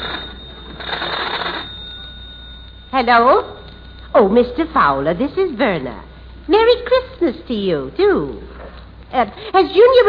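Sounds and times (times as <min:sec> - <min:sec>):
telephone bell ringing: 0:00.0 - 0:05.6
speech: 0:03.0 - 0:03.6, 0:04.2 - 0:08.5, 0:09.1 - 0:10.0.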